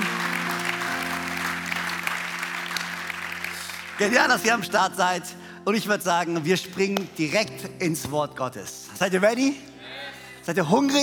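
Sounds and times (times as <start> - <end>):
audience applause: 0.0 - 4.2
speech: 4.0 - 11.0.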